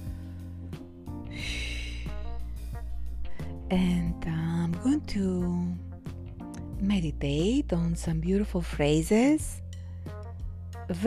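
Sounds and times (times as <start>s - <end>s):
deep breath during a meditation session: 0.0s - 3.7s
sustained low musical tones: 0.0s - 11.0s
speech: 3.7s - 5.9s, 6.8s - 9.6s, 10.9s - 11.0s.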